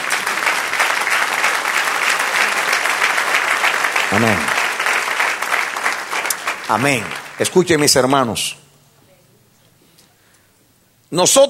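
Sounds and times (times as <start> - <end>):
audience applause: 0.0 - 8.3
speech: 4.1 - 4.6, 6.7 - 8.6, 11.1 - 11.4.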